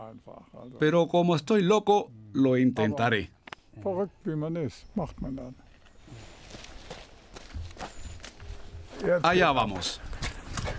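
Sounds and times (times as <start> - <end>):
speech: 0.1 - 5.6, 9.0 - 10.1
footsteps of an 81-year-old man jogging up 177 stairs two at a time: 6.5 - 10.7.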